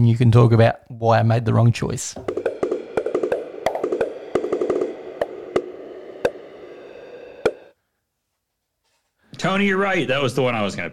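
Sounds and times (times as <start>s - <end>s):
speech: 0.0s - 2.4s, 9.5s - 10.9s
dripping drum roll sound effect: 2.1s - 7.7s.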